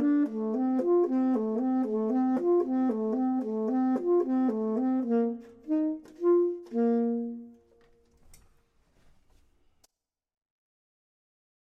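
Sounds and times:
clarinet: 0:00.0 - 0:08.1
saxophone: 0:00.0 - 0:08.1.

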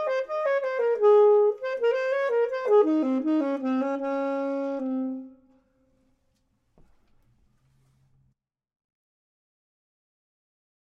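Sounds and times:
clarinet: 0:00.0 - 0:05.7
saxophone: 0:00.0 - 0:05.7.

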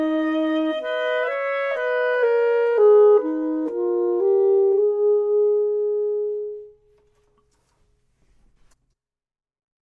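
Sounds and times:
saxophone: 0:00.0 - 0:06.9
clarinet: 0:00.0 - 0:07.4.

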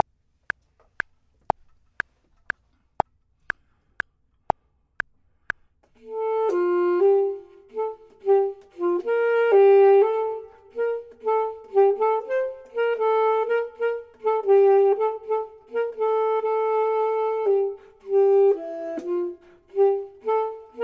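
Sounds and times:
saxophone: 0:05.9 - 0:20.8
clarinet: 0:06.0 - 0:20.8.

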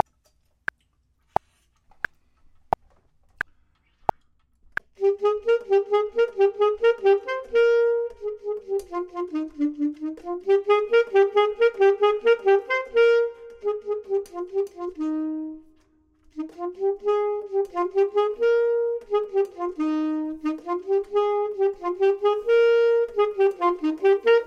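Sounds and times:
clarinet: 0:05.0 - 0:24.4
saxophone: 0:05.0 - 0:24.4.

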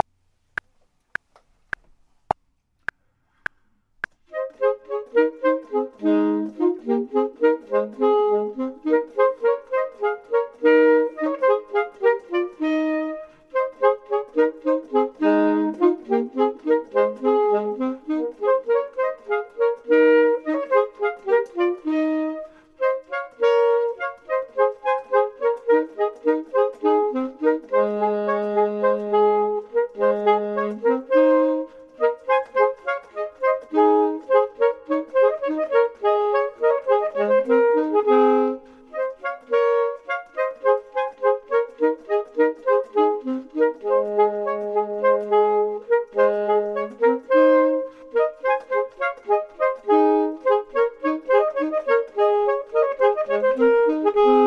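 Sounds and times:
saxophone: 0:03.4 - 0:54.4
clarinet: 0:04.2 - 0:54.4.

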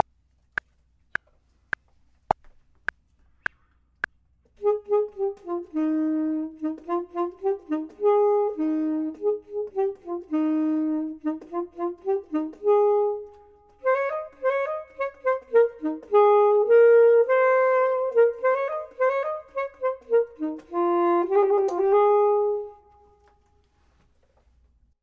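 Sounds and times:
saxophone: 0:04.6 - 0:23.8
clarinet: 0:04.6 - 0:23.9.

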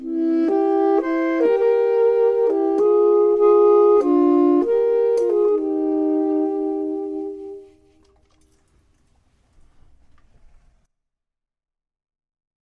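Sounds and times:
clarinet: 0:00.0 - 0:08.6
saxophone: 0:00.0 - 0:08.6.

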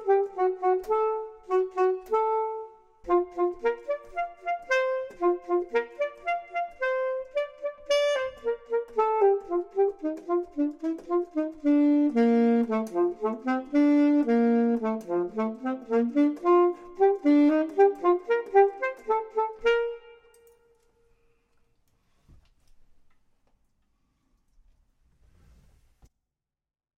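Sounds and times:
clarinet: 0:00.0 - 0:20.9
saxophone: 0:00.0 - 0:21.1.

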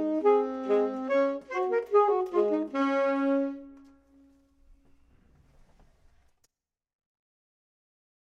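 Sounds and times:
saxophone: 0:00.0 - 0:04.5
clarinet: 0:00.0 - 0:04.6.

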